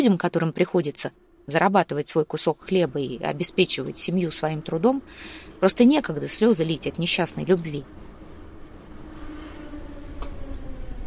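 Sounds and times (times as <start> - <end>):
speech: 0.0 - 8.0
subway train stopping at Sadovaya, Sennaya and Spasskaya station: 2.3 - 11.0.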